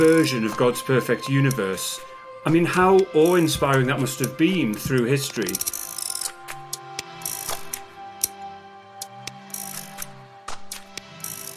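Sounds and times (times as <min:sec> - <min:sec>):
ticking gears of a mechanical clock: 0:00.0 - 0:00.8, 0:01.4 - 0:01.8, 0:02.9 - 0:08.4, 0:09.0 - 0:11.5
speech: 0:00.0 - 0:05.8.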